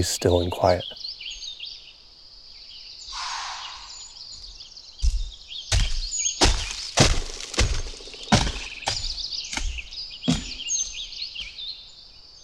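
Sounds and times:
speech: 0.0s - 1.0s
birds singing: 0.0s - 12.4s
mule deer running through forest: 4.2s - 12.1s
twigs breaking underfoot: 5.0s - 11.6s.

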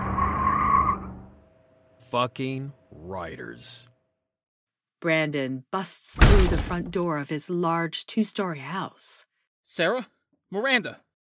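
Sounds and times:
car tires screeching as it speeds off: 0.0s - 1.4s
speech: 2.1s - 3.9s, 5.0s - 11.0s.

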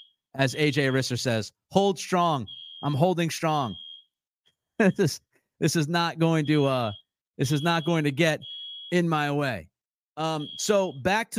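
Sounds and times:
alarm going off: 0.0s - 1.1s, 2.4s - 4.2s, 5.9s - 9.4s, 10.2s - 11.3s
speech: 0.4s - 3.8s, 4.8s - 11.3s.

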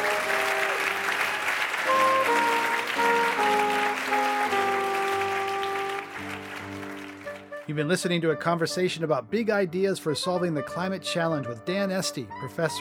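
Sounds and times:
audience applause: 0.0s - 7.7s
speech: 7.7s - 12.7s.

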